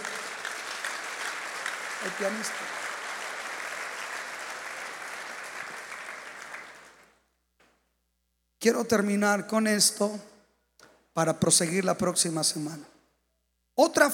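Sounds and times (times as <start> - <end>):
audience applauding: 0.0 - 7.2
speech: 2.0 - 2.9, 8.6 - 10.3, 11.2 - 12.9, 13.8 - 14.1.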